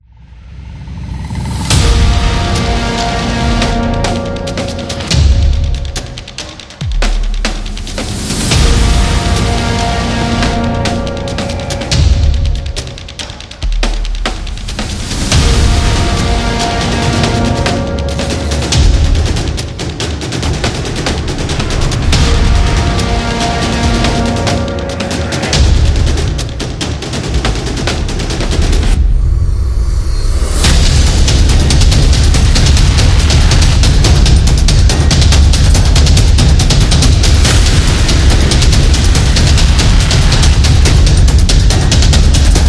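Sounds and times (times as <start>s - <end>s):
countdown trailer war drums: 0.8s - 42.6s.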